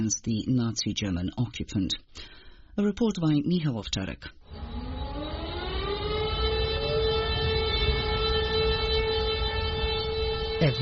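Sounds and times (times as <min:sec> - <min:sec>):
speech: 0:00.0 - 0:04.8, 0:10.6 - 0:10.8
commemorative sirens sounding across Warsaw: 0:04.4 - 0:10.8.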